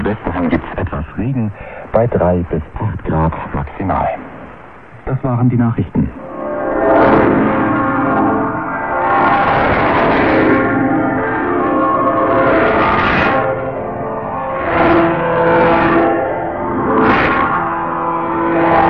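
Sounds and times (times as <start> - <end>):
speech: 1.2 - 4.2, 5.0 - 6.3, 6.9 - 7.7
church bells ringing: 6.2 - 18.8.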